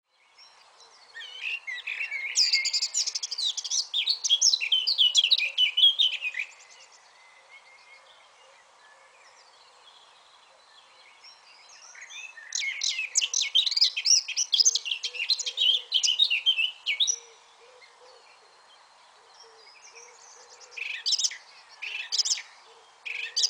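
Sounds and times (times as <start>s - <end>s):
Eurasian blackcap warbling song: 1.2s - 7.0s, 11.3s - 17.2s, 20.8s - 22.5s, 23.1s - 23.4s.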